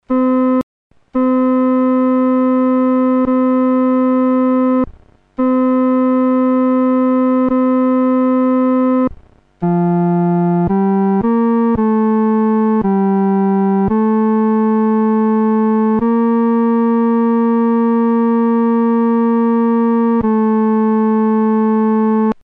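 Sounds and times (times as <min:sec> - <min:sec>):
solo music third voice: 0:01.2 - 0:22.4.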